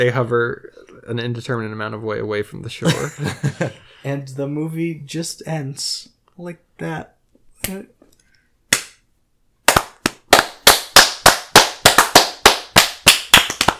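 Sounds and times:
speech: 0:00.0 - 0:08.0
hand claps: 0:08.7 - 0:09.0, 0:09.7 - 0:13.7.

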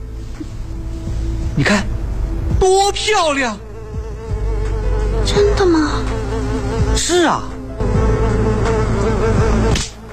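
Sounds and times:
speech: 0:01.6 - 0:02.0, 0:02.6 - 0:03.6, 0:07.0 - 0:07.9
housefly buzzing: 0:03.5 - 0:10.1.

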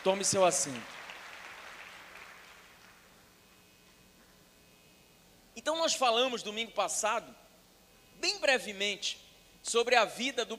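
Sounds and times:
speech: 0:00.0 - 0:01.0, 0:05.6 - 0:07.4, 0:08.2 - 0:10.5
audience applause: 0:00.0 - 0:03.1.

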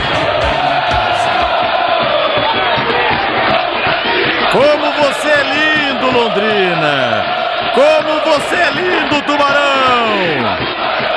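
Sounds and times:
low thumping beats: 0:00.0 - 0:06.3
football stadium crowd cheering and chanting: 0:00.0 - 0:11.1
speech: 0:05.3 - 0:10.8.

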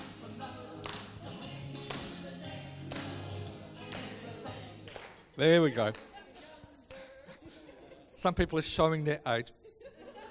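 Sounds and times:
music or singing with a low droning tone: 0:00.0 - 0:05.8
crowd clapping along in unison: 0:00.0 - 0:06.3
speech: 0:05.4 - 0:06.1, 0:08.2 - 0:09.6
laughter: 0:05.6 - 0:08.5, 0:09.5 - 0:10.2.

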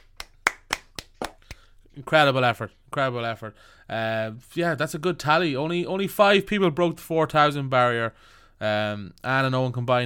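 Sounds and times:
hand claps: 0:00.0 - 0:01.7
speech: 0:02.0 - 0:10.0.

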